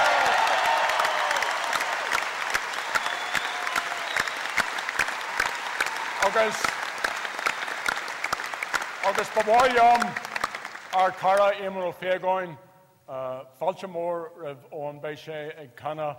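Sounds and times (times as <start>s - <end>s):
audience applause: 0.0s - 11.3s
speech: 6.3s - 6.8s, 9.1s - 10.2s, 10.9s - 16.1s.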